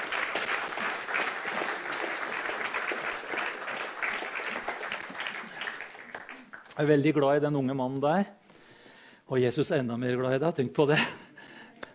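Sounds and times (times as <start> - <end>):
audience applause: 0.0 - 6.8
speech: 6.8 - 8.4, 9.3 - 11.2.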